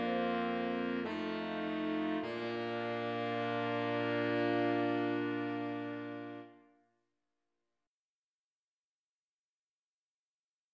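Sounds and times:
saxophone quartet playing: 0:00.0 - 0:06.6.

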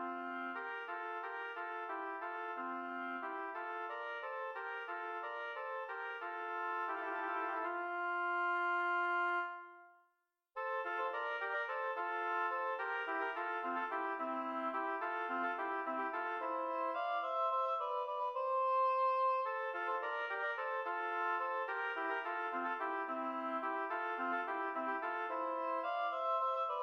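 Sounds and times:
two oboes playing an air in F major: 0:00.0 - 0:09.9, 0:10.6 - 0:26.8.

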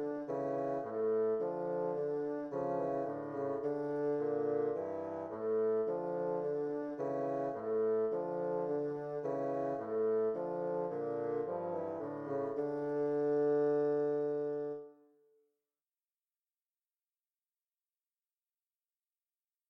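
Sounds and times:
bassoon duet playing a gavotte: 0:00.0 - 0:15.0.

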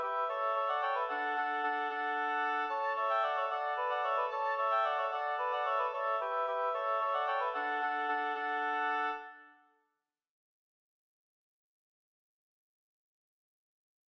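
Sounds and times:
oboe trio playing a bourrée and minuet: 0:00.0 - 0:09.4.

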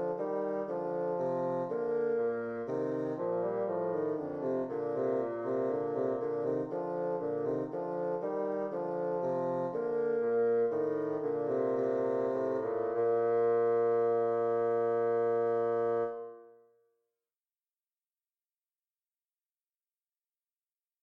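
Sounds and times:
bassoon playing a bourree: 0:00.0 - 0:16.6.

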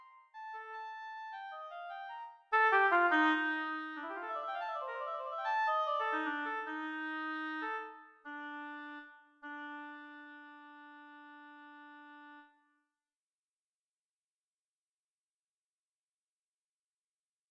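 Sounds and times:
solo oboe: 0:00.0 - 0:12.7.

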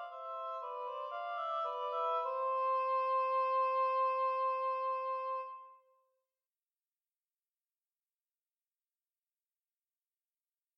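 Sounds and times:
oboe duet playing a rondo: 0:00.0 - 0:05.7.

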